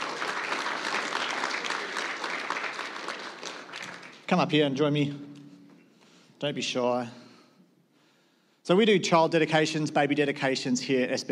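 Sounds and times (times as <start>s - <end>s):
audience applause at a church child dedication: 0.0s - 4.3s
speech: 4.3s - 5.3s, 6.4s - 7.2s, 8.7s - 11.3s.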